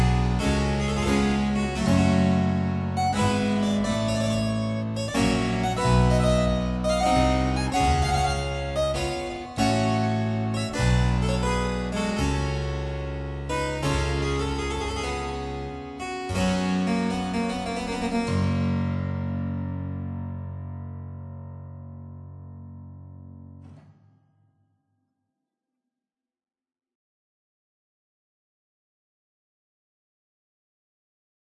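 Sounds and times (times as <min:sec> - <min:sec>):
harpsichord prelude: 0:00.0 - 0:20.4.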